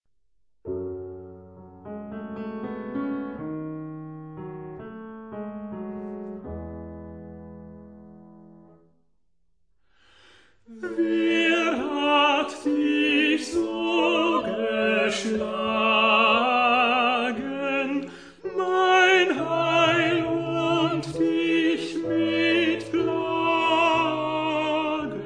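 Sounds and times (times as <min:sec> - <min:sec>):
tenor singing: 0:10.7 - 0:25.2.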